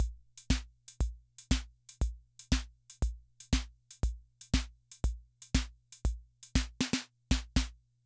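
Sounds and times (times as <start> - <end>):
classic drum machine rhythm loop: 0.0 - 7.8.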